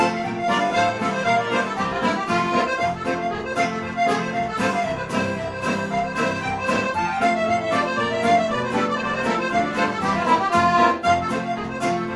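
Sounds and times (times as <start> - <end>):
Irish band playing a reel live: 0.0 - 12.1.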